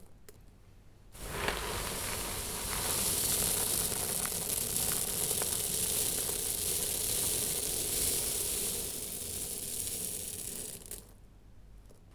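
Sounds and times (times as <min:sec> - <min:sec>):
particles pouring: 0:01.2 - 0:11.2.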